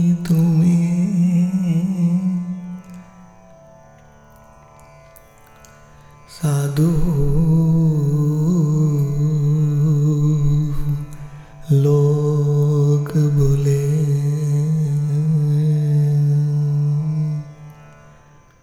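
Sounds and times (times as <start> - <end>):
Bengali Hindi bhajan: 0.0 - 3.3, 6.3 - 17.8.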